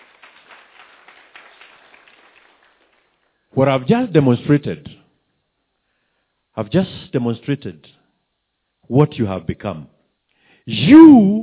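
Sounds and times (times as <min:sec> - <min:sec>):
audience clapping: 0:00.0 - 0:04.4
speech: 0:03.6 - 0:05.0, 0:06.6 - 0:08.0, 0:08.9 - 0:09.9, 0:10.6 - 0:11.4.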